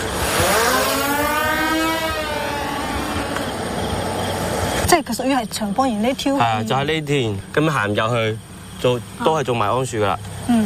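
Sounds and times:
drone flying overhead: 0:00.0 - 0:04.8
speech: 0:04.9 - 0:10.6.

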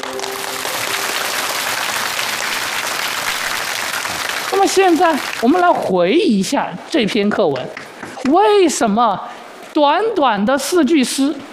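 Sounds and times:
classroom applause: 0:00.0 - 0:05.7
speech: 0:04.6 - 0:11.5.

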